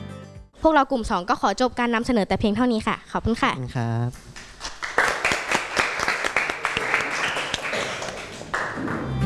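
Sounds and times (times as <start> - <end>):
speech: 0.7 - 4.4
classroom applause: 4.3 - 9.1.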